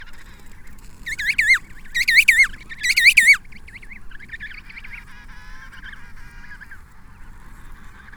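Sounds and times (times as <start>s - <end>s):
penguin calls in loud wavering harmonic bursts: 1.1s - 3.4s.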